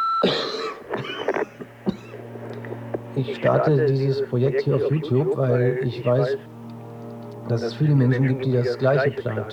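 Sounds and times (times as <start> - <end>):
speech: 0.2 - 0.6, 3.2 - 6.5, 7.5 - 9.5
person coughing: 0.2 - 2.2
laughter: 0.2 - 6.4.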